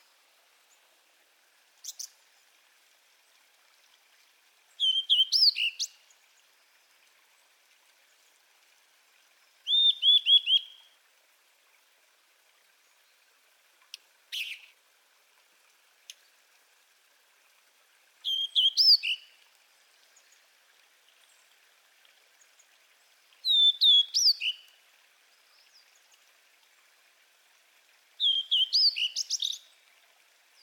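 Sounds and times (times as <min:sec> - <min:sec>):
Blue-and-white flycatcher Cyanoptila cyanomelana song: 0:04.8 - 0:06.0, 0:09.7 - 0:10.8, 0:14.3 - 0:14.7, 0:18.2 - 0:19.3, 0:23.4 - 0:24.7, 0:28.2 - 0:29.7.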